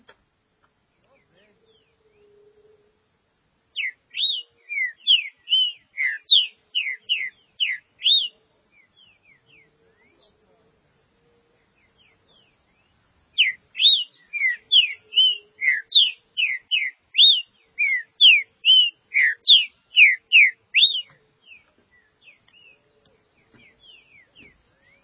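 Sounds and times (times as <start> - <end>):
green-winged saltator song: 3.8 - 10.3, 11.6 - 25.0.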